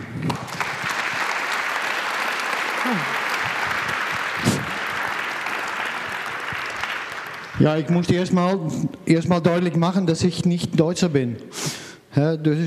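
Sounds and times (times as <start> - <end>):
audience applause: 0.0 - 8.1
speech: 2.8 - 3.1, 7.6 - 12.6.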